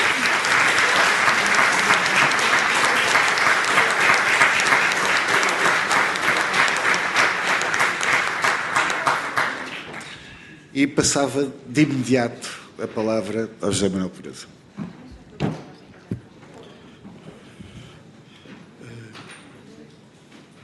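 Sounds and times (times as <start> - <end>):
applause: 0.0 - 10.4
speech: 10.8 - 14.9.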